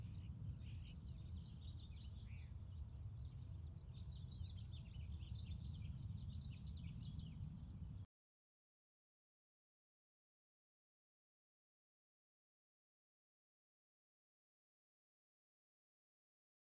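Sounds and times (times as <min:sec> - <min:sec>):
airplane flying very high in the sky: 0:00.0 - 0:08.1.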